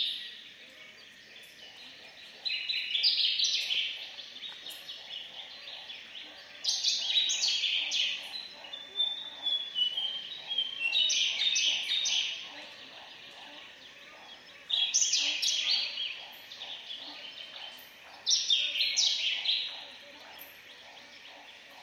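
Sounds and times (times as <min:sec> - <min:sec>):
Large-tailed Nightjar chopping calls: 0:01.7 - 0:21.8.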